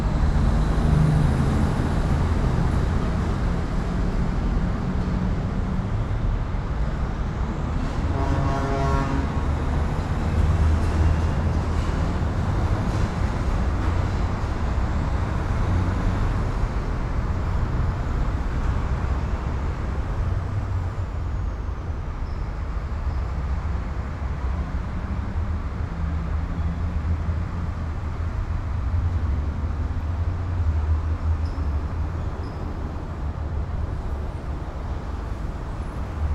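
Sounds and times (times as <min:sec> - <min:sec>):
train: 0:00.0 - 0:36.3
truck horns: 0:07.8 - 0:09.6.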